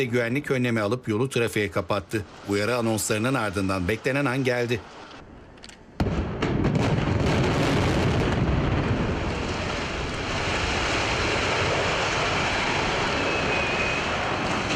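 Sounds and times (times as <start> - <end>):
speech: 0.0 - 5.1
dynamite charges detonating in controlled demolition of 16-storey building: 6.0 - 14.7
sustained rumbling roar of a 16-storey building collapsing: 6.0 - 14.7.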